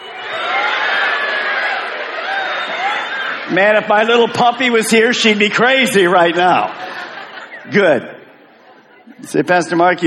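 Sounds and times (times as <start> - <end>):
crowd imitating bird calls: 0.0 - 4.3, 6.2 - 9.2
laughter: 0.0 - 10.0
speech: 3.5 - 6.8, 7.6 - 8.2, 9.2 - 10.0.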